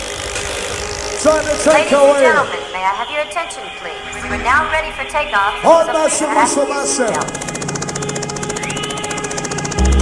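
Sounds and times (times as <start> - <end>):
helicopter engine: 0.0 - 9.9
speech: 1.2 - 7.5.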